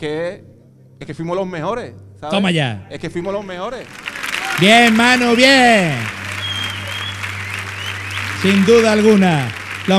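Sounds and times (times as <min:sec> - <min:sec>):
speech: 0:00.0 - 0:06.2, 0:08.4 - 0:09.9
audience applauding: 0:03.8 - 0:09.9.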